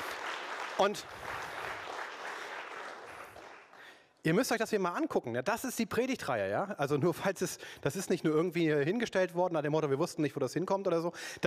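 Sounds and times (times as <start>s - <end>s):
audience applause at a church service: 0.0s - 4.0s
speech: 0.8s - 1.4s, 4.2s - 11.4s.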